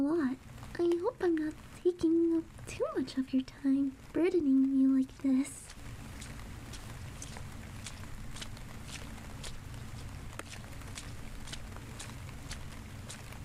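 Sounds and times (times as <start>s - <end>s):
speech: 0.0s - 5.6s
constant soft hiss: 0.0s - 13.4s
footsteps of people walking home together: 5.6s - 13.4s.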